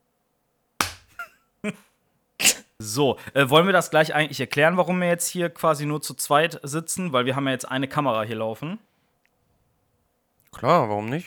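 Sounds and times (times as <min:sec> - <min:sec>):
sharp hand claps: 0:00.8 - 0:01.2
speech: 0:01.6 - 0:01.9, 0:02.8 - 0:08.9, 0:10.5 - 0:11.2.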